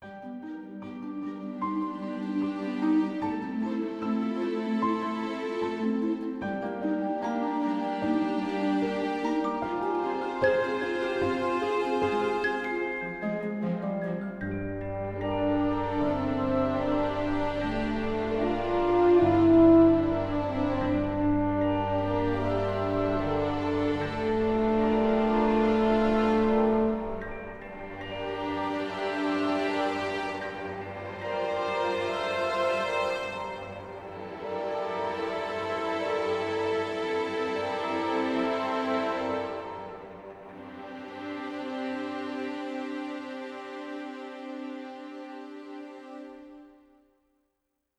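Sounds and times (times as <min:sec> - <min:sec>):
forest music: 0:00.0 - 0:47.0.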